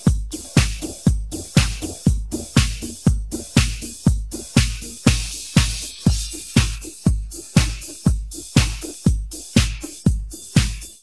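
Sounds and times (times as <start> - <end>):
drum: 0.0 - 11.0.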